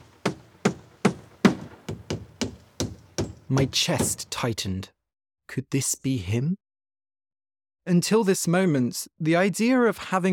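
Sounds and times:
hammering with sharp ringing blows: 0.0 - 4.4
speech: 3.5 - 6.6, 7.9 - 10.3.

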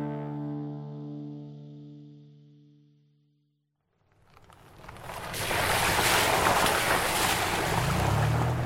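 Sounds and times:
boat surging across ocean waves: 5.1 - 8.6.

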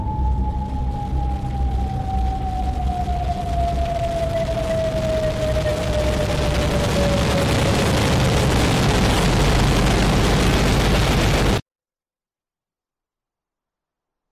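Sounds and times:
faint slowly falling tone: 0.0 - 9.7
atomic bomb explosion: 0.0 - 11.6.

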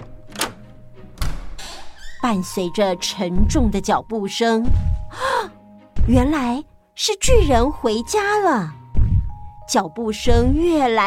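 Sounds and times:
heavy door opening with a mechanical click: 0.0 - 2.2
heavy door swinging and knocking: 0.0 - 2.2, 3.4 - 3.9, 6.0 - 6.4
speech: 2.2 - 5.5, 6.1 - 8.8, 9.7 - 11.0.

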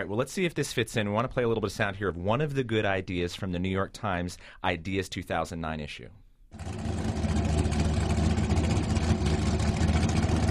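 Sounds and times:
speech: 0.0 - 6.8
American gas-guzzler car engine needing a tune-up, spewing soot: 6.6 - 10.5.

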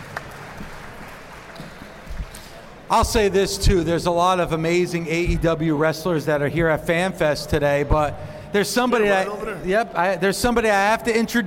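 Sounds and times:
audience round of applause: 0.0 - 2.8
speech: 2.9 - 11.4.

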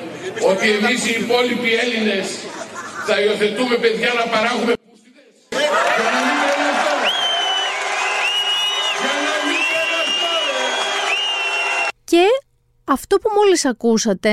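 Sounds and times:
laughter: 0.0 - 1.1, 2.1 - 3.8, 5.6 - 7.1
speech: 0.4 - 2.5, 3.1 - 4.8, 12.1 - 14.3
crowd applauding: 5.5 - 11.9.

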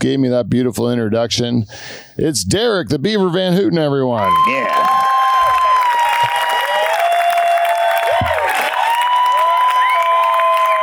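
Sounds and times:
speech: 0.0 - 5.2
crowd applauding: 4.2 - 10.8.

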